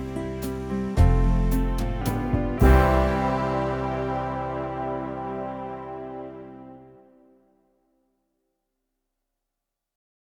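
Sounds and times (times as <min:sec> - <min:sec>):
folk backing played on bassoon: 0:00.0 - 0:07.3.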